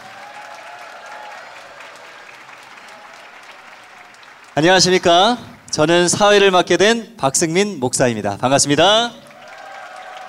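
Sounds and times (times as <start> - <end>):
crowd applause: 0.0 - 5.7, 9.2 - 10.2
speech: 4.6 - 9.2.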